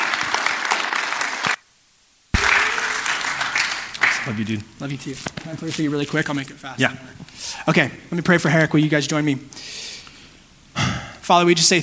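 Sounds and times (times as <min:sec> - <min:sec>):
audience applause: 0:00.0 - 0:01.6, 0:02.4 - 0:04.6
speech: 0:04.3 - 0:09.8, 0:11.3 - 0:11.8.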